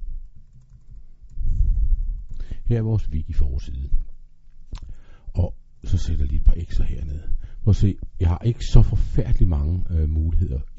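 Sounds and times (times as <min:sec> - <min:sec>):
computer keyboard typing: 0:00.2 - 0:01.4, 0:02.2 - 0:02.5
speech: 0:02.7 - 0:04.1, 0:06.0 - 0:10.7.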